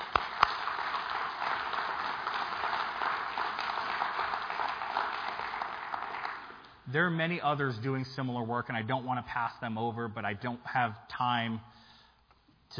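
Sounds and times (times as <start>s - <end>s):
round of applause: 0.0s - 6.8s
speech: 6.9s - 11.8s.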